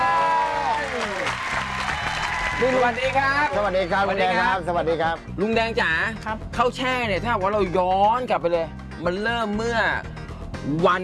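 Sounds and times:
loud audience applause: 0:00.0 - 0:03.9
speech: 0:02.6 - 0:11.0.

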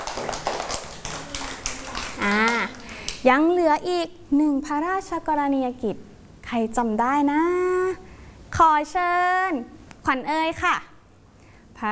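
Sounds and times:
audience clapping: 0:00.0 - 0:03.3
speech: 0:03.2 - 0:07.8, 0:08.6 - 0:10.9.

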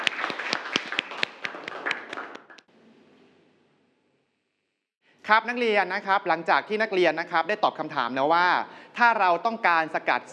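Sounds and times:
classroom applause: 0:00.0 - 0:02.7
speech: 0:05.3 - 0:10.3.

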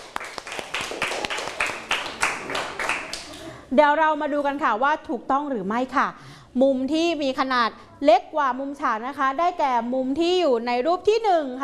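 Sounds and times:
people clapping for classmates: 0:00.0 - 0:03.6
speech: 0:03.7 - 0:11.6.

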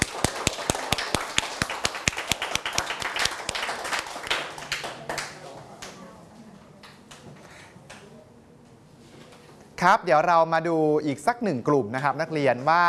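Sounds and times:
students clapping hands: 0:00.0 - 0:06.0
speech: 0:09.8 - 0:12.8.

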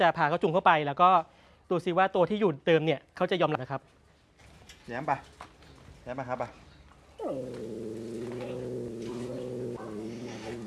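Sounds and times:
speech: 0:00.0 - 0:04.0, 0:04.9 - 0:05.4, 0:06.1 - 0:06.6, 0:07.2 - 0:07.8
cat growling yowl while confronting a newcomer cat: 0:07.2 - 0:10.6.

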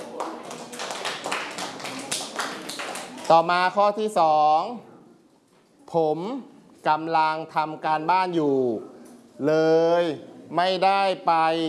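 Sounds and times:
hand clapping: 0:00.0 - 0:03.3
speech: 0:03.3 - 0:04.9, 0:05.9 - 0:11.6.

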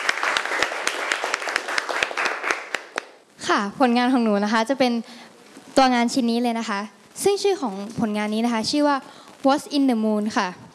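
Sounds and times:
audience applause for a group: 0:00.0 - 0:03.2
speech: 0:03.5 - 0:10.6.

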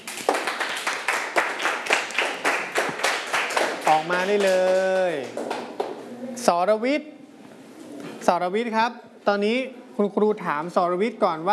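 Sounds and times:
students clapping in rhythm: 0:00.0 - 0:06.0
speech: 0:03.9 - 0:07.2, 0:08.2 - 0:11.5.

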